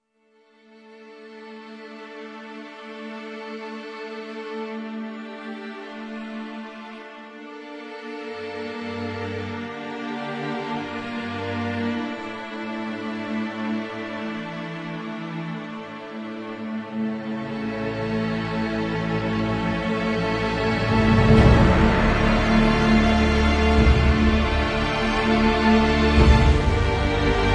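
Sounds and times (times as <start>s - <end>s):
instrumental music: 0.6s - 27.5s.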